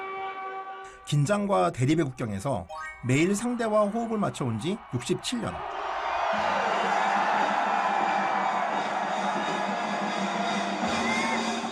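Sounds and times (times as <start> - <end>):
speech: 1.1 - 7.0
large crowd cheering and shouting: 3.7 - 11.7.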